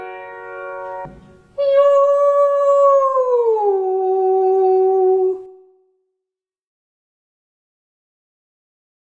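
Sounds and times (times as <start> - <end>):
ascending cry: 1.6 - 5.3.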